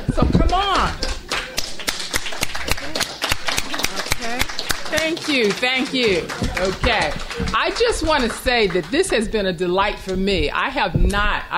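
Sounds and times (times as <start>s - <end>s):
speech: 0.2s - 1.0s, 5.0s - 11.5s
audience round of applause: 0.6s - 9.3s.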